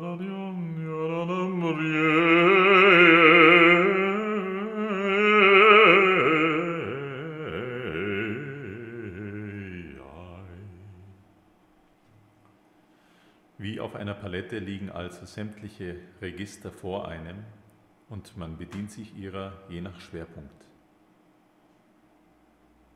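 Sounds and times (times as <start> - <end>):
mixed voice singing with register blending: 0.0 - 11.2.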